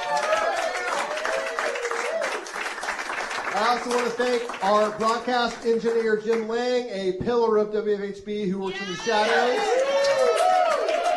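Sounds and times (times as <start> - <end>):
audience applause at a live show in the Brown County Inn bar: 0.0 - 6.2, 9.0 - 11.1
speech: 3.6 - 10.0
person shouting: 8.7 - 9.9.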